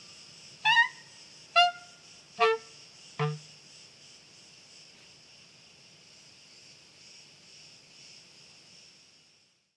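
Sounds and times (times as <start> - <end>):
crickets chirping: 0.0 - 9.7.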